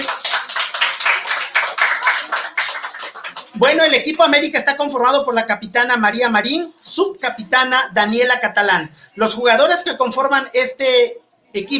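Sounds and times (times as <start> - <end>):
audience applause: 0.0 - 3.6
speech: 3.6 - 11.7.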